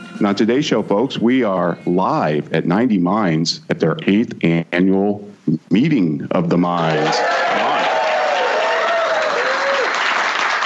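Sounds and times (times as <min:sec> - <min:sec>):
speech: 0:00.2 - 0:07.5
live audience applause: 0:06.8 - 0:10.6.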